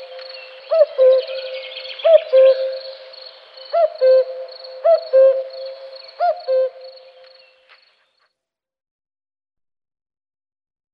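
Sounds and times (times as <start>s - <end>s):
cuckoo calling two-note cu-ckoo: 0.0s - 7.8s.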